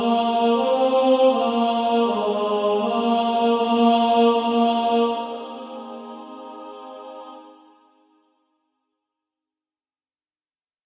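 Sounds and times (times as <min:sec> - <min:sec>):
female choir singing: 0:00.0 - 0:08.2.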